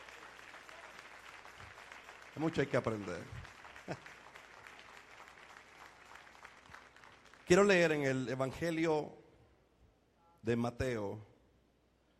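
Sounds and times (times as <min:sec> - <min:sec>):
audience applauding: 0:00.0 - 0:07.9
speech: 0:02.4 - 0:04.2, 0:07.5 - 0:09.2, 0:10.4 - 0:11.3.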